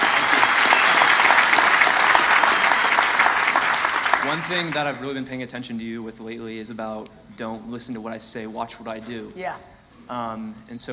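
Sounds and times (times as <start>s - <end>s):
audience round of applause: 0.0s - 5.2s
speech: 4.3s - 10.9s.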